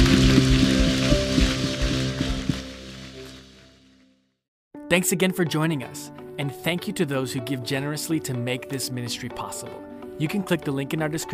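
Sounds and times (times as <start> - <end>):
audience clapping hands: 0.0 - 3.6
speech: 4.9 - 11.3.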